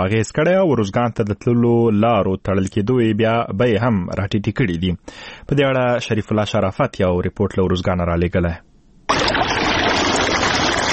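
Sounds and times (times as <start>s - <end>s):
speech: 0.0s - 8.7s
irrigation water rushing through a pomegranate orchard in Sefid Khar, Tarinkot: 9.1s - 10.9s.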